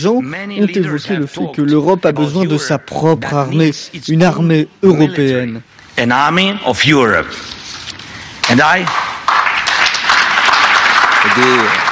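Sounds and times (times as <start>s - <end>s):
speech: 0.0s - 7.6s, 8.5s - 9.1s, 11.2s - 11.8s
audience applause at the Munich conference: 8.9s - 11.9s.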